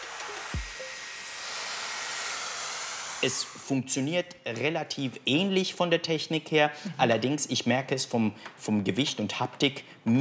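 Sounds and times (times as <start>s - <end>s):
hot air hair styler blowing: 0.0s - 3.7s
speech: 3.2s - 10.1s.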